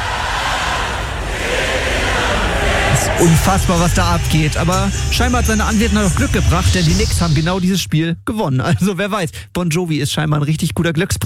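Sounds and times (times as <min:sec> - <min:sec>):
huge arena crowd cheering and shouting: 0:00.0 - 0:07.5
speech: 0:03.2 - 0:11.2.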